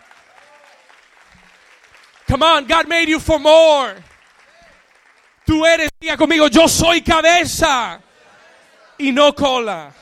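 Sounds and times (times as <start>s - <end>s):
crowd applause: 0.0s - 5.6s
speech: 2.3s - 4.1s, 5.5s - 8.0s, 9.0s - 10.0s.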